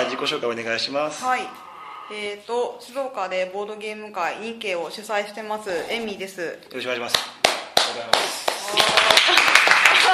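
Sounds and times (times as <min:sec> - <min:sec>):
speech: 0:00.2 - 0:07.4, 0:08.0 - 0:09.4
audience clapping: 0:07.1 - 0:10.1.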